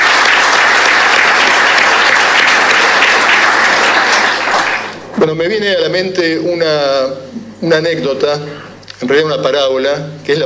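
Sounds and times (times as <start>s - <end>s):
audience applause: 0.0s - 5.2s
speech: 5.2s - 10.4s.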